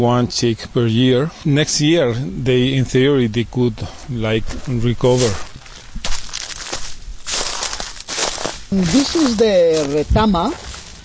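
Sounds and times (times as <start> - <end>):
speech: 0.0 - 5.5, 8.7 - 10.6
footsteps crunching through bone-dry grassland: 3.8 - 11.0.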